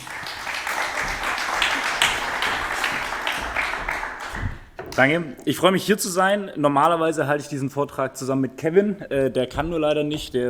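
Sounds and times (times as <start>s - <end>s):
audience applause for a speaker: 0.0s - 4.7s
speech: 5.0s - 10.4s.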